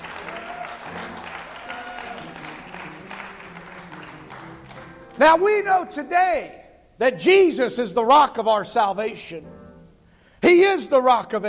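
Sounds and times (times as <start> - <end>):
audience clapping in praise: 0.0 - 5.4
speech: 5.2 - 9.6, 10.4 - 11.4.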